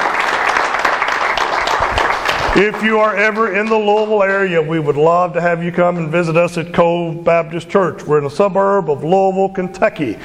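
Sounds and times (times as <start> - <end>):
congregation applause at Cove Baptist Church in suburban Louisville, Kentucky: 0.0 - 4.4
speech: 2.6 - 10.2.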